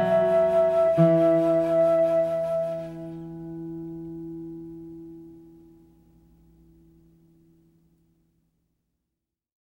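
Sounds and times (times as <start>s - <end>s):
flute: 0.0s - 3.6s
guitar: 0.0s - 8.3s.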